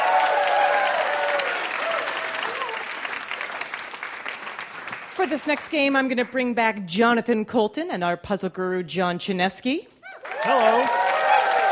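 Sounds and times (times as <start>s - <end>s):
cheers and whoops: 0.0s - 2.9s, 10.0s - 11.7s
live audience applause: 0.0s - 5.7s, 10.2s - 11.7s
speech: 5.2s - 11.1s.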